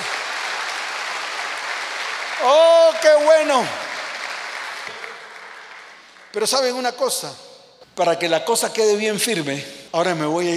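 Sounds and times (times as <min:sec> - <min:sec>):
audience applause: 0:00.0 - 0:06.7
speech: 0:02.4 - 0:03.8, 0:06.3 - 0:07.4, 0:08.0 - 0:10.5.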